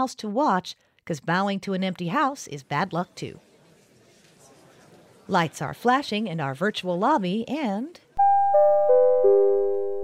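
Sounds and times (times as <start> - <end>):
speech: 0.0 - 3.5, 5.3 - 8.6
theatre intermission chime with four descending bell-like tones: 8.2 - 10.0.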